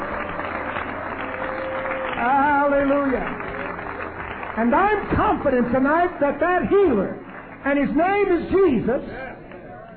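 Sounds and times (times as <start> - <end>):
church congregation clapping during a healing service: 0.0 - 8.5
speech: 4.6 - 9.3.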